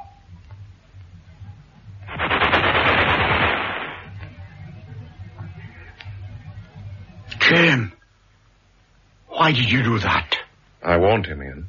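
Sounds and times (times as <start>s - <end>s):
gunfire in a dramatic military scene: 2.1s - 4.1s
speech: 9.5s - 10.3s, 10.9s - 11.6s.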